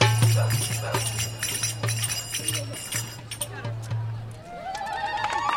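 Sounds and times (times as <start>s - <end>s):
finger cymbals clanging: 0.0s - 3.9s
murmur of crowd voices: 0.0s - 5.4s.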